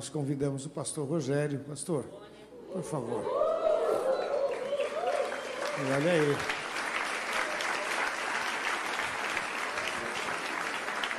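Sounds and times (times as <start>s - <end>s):
speech: 0.0s - 3.5s, 5.8s - 6.6s
audience applauding: 4.2s - 11.1s.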